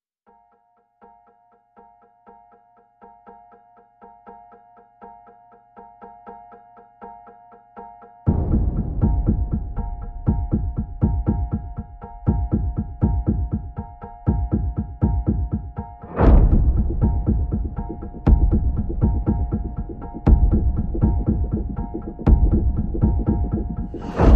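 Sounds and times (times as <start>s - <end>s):
percussion: 0.2s - 24.3s
electronic pulses: 16.5s - 24.3s.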